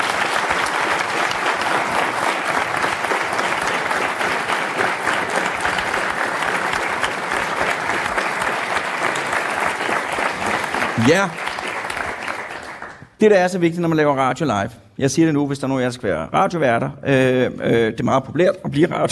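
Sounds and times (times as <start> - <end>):
audience applause: 0.0 - 13.0
speech: 11.1 - 11.5, 13.2 - 19.1.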